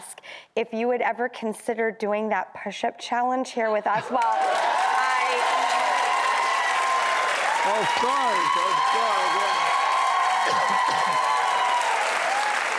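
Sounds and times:
speech: 0.6s - 4.8s, 7.6s - 9.7s, 10.4s - 11.3s
audience cheering and applauding: 4.0s - 12.7s.

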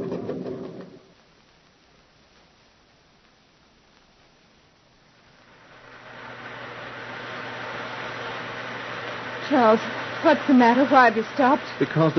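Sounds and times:
heavy rain: 5.1s - 12.1s
speech: 9.7s - 12.1s.

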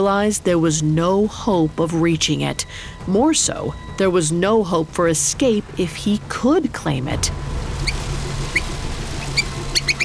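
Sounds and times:
speech: 0.0s - 7.6s
low steady rumbling hum: 0.0s - 10.0s
mouse squeaking: 7.8s - 10.0s.

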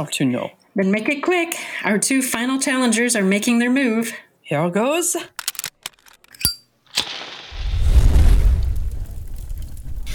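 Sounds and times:
speech: 0.0s - 5.4s
sharp clicks: 5.4s - 7.4s
green fire bursting along a sword blade: 7.0s - 10.1s.

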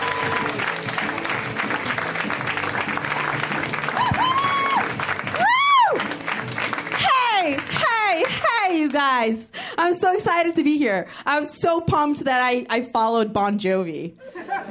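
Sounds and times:
audience clapping and cheering to welcome a performer: 0.0s - 9.6s
speech: 9.2s - 14.6s
laughter: 14.2s - 14.6s.

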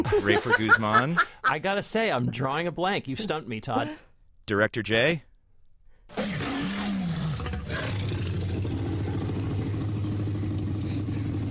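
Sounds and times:
laughter: 0.0s - 2.6s
speech: 0.0s - 5.3s
movie T-Rex roar built from dog, penguin, tiger, alligator and elephant sounds: 6.2s - 8.6s
low rumbling drone: 6.7s - 11.4s.

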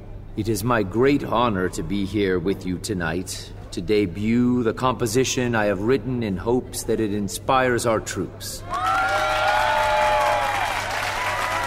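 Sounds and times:
speech: 0.4s - 9.0s
audience applause: 8.7s - 11.6s.

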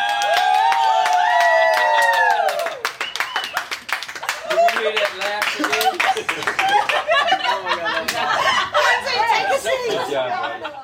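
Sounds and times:
crowd cheering and shouting: 0.0s - 2.8s
crowd applause: 0.0s - 8.7s
laughter: 4.2s - 10.8s.

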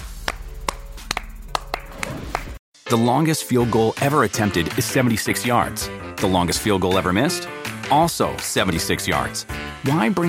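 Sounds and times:
sharp hand claps: 0.2s - 2.6s
speech: 2.9s - 10.2s.

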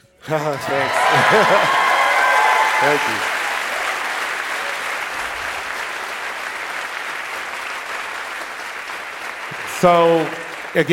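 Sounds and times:
speech: 0.2s - 1.8s, 2.8s - 3.3s, 9.8s - 10.9s
laughter: 0.2s - 3.3s
audience applause: 0.3s - 10.9s.

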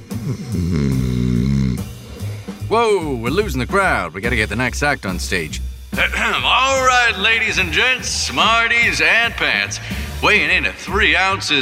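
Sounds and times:
voice imitating old woman snoring: 0.0s - 2.5s
speech: 0.3s - 1.3s, 2.7s - 11.5s.

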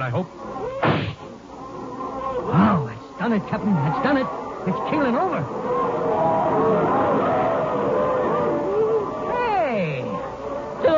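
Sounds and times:
speech: 0.0s - 0.5s, 3.3s - 7.4s
tribesmen shouting and whooping in celebration: 2.4s - 10.9s.

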